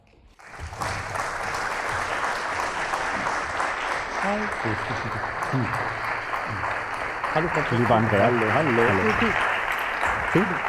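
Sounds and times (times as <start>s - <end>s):
audience applauding: 0.4s - 10.6s
speech: 4.2s - 6.7s, 7.3s - 9.5s, 10.3s - 10.6s.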